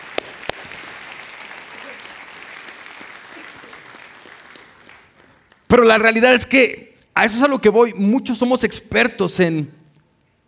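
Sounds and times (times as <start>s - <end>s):
audience applause: 0.0s - 5.7s
speech: 5.8s - 9.8s.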